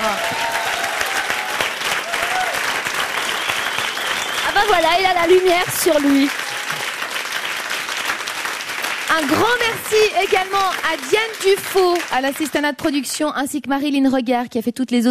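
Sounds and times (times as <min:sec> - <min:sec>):
audience clapping: 0:00.0 - 0:13.0
speech: 0:04.6 - 0:06.4, 0:09.1 - 0:15.0.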